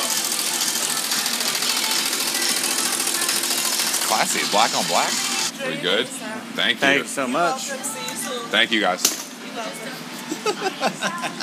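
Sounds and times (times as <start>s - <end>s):
embroidery machine stitching a hat: 0.0s - 5.5s
speech: 4.2s - 11.4s
laughter: 10.2s - 11.4s.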